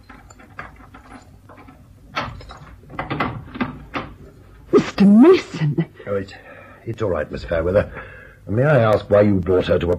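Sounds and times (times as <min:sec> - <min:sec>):
door being unlocked with skeleton keys: 0:00.0 - 0:04.0
speech: 0:05.0 - 0:09.9.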